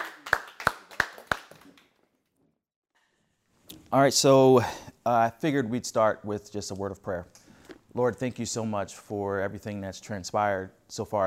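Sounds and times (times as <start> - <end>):
audience applauding: 0.0 - 2.0
speech: 3.9 - 11.2.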